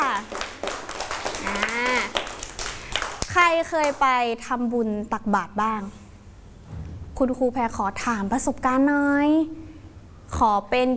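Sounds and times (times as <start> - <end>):
children clapping applause: 0.0 - 4.0
speech: 3.5 - 6.0, 7.2 - 9.6, 10.4 - 10.9.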